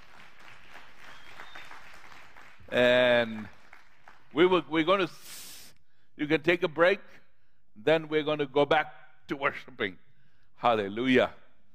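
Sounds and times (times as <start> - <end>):
applause for the worship team: 0.0 - 5.0
speech: 2.7 - 3.6, 4.3 - 5.3, 6.2 - 7.2, 7.8 - 10.0, 10.6 - 11.4.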